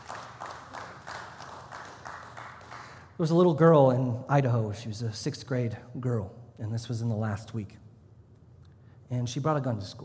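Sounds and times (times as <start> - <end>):
audience clapping: 0.0 - 3.2
speech: 3.2 - 7.8, 9.1 - 10.0.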